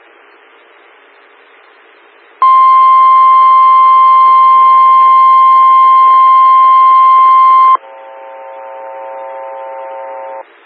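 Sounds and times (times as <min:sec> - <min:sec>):
emergency weather alert warning tone: 0:02.4 - 0:10.4.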